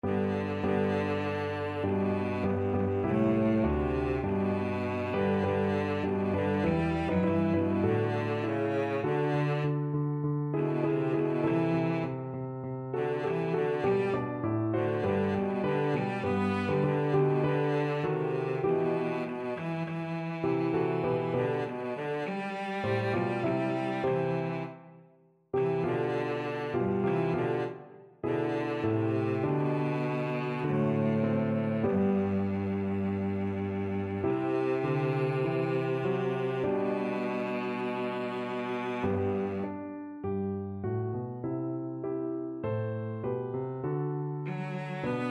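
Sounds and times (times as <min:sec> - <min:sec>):
violoncello: 0:00.0 - 0:45.2.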